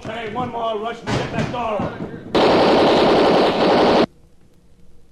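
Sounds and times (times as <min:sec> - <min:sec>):
speech: 0:00.1 - 0:02.1
machine gun firing: 0:02.4 - 0:04.1.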